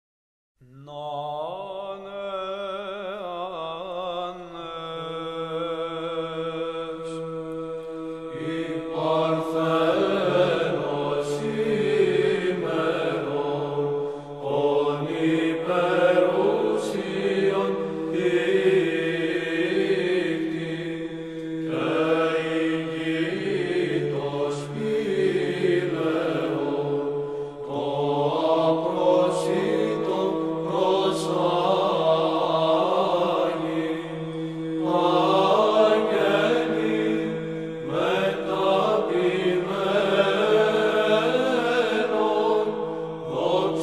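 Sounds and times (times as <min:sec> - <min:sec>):
hymn: 0:00.6 - 0:43.8.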